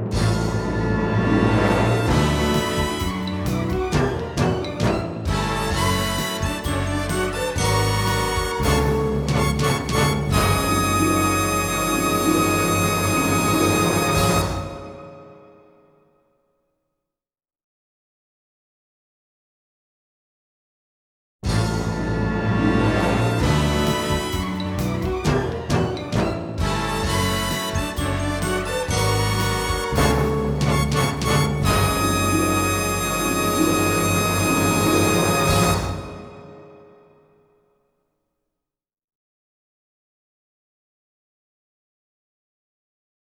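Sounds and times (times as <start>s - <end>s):
instrumental fanfare: 0.1s - 15.7s, 21.5s - 37.1s.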